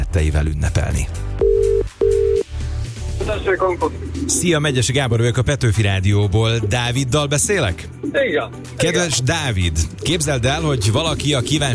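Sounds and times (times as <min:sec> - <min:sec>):
speech: 0:00.1 - 0:01.3, 0:03.2 - 0:11.7
telephone ringing tone beeps as a radio host calls a listener: 0:01.4 - 0:02.4.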